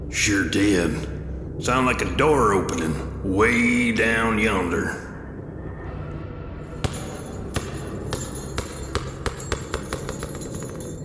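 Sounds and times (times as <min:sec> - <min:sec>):
steady low rumble: 0:00.0 - 0:11.0
speech: 0:00.1 - 0:05.1
small toy ball bouncing down stairs: 0:06.9 - 0:11.0.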